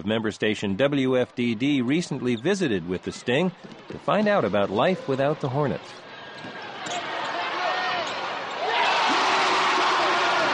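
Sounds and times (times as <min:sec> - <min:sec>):
speech: 0:00.0 - 0:07.0
basketball fans cheering in arena at the Charlotte Coliseum: 0:06.1 - 0:10.5.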